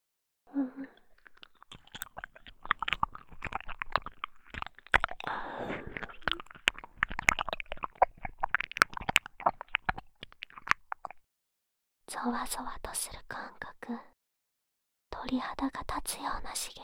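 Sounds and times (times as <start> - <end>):
ear licking ASMR sounds: 0.8 - 11.2
speech: 12.2 - 14.1, 15.3 - 16.8.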